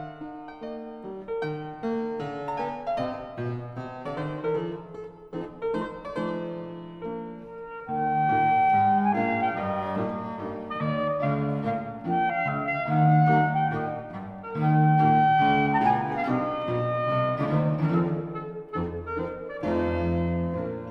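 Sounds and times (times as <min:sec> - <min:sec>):
clarinet trio: 0:01.3 - 0:20.8.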